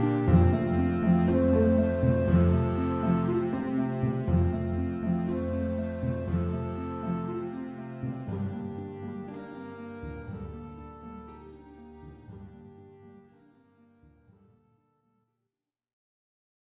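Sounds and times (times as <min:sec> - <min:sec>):
winter arpeggios: 0:00.0 - 0:13.0.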